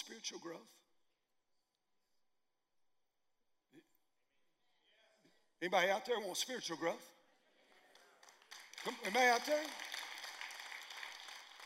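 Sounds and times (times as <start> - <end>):
speech: 0.1 - 0.8, 5.6 - 7.2, 8.8 - 9.9
golf clap from a small crowd: 7.7 - 11.6.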